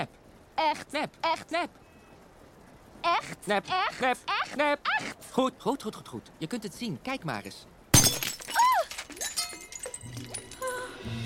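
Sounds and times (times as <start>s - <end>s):
speech: 0.0s - 1.8s, 3.0s - 7.7s
glass fake ruby being smashed: 7.9s - 10.9s
tinkling glass fragments: 8.0s - 11.0s.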